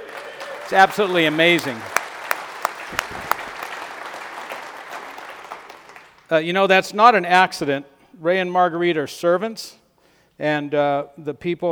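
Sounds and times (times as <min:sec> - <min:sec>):
audience applause: 0:00.0 - 0:06.2
speech: 0:00.7 - 0:01.9, 0:06.3 - 0:09.8, 0:10.4 - 0:11.6.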